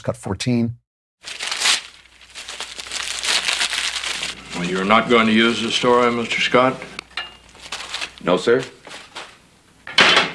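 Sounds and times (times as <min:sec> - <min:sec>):
speech: 0:00.0 - 0:01.4, 0:04.6 - 0:06.9, 0:08.2 - 0:08.8
paper being torn up by a reporter in The Man Who Shot Liberty Valance: 0:01.2 - 0:06.4, 0:07.5 - 0:08.4.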